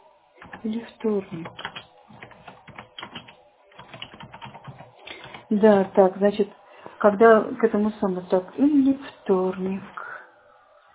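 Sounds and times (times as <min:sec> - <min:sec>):
typing on a computer keyboard: 0:00.4 - 0:06.3
speech: 0:00.6 - 0:01.7, 0:05.5 - 0:10.0.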